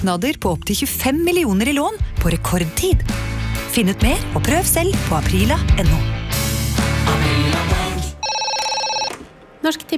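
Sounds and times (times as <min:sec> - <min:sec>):
speech: 0:00.0 - 0:06.2, 0:09.6 - 0:09.9
loud music: 0:02.3 - 0:08.2
telephone ringing with an electronic tone: 0:08.2 - 0:09.4.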